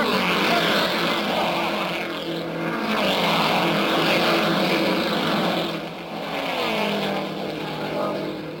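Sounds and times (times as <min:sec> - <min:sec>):
racing cars roaring past on track: 0:00.0 - 0:08.5.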